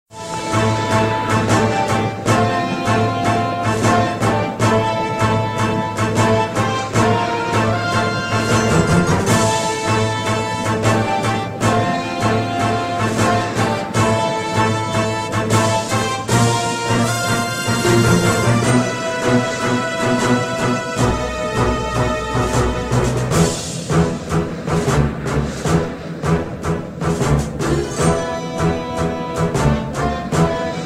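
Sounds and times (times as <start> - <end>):
castle theme music: 0.1 - 30.8.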